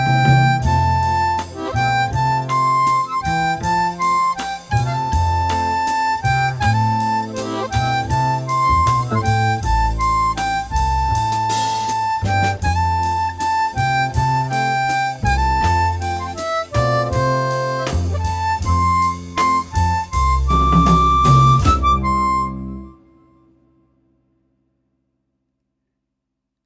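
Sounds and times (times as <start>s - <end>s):
harp music in C at 80: 0.0s - 23.1s.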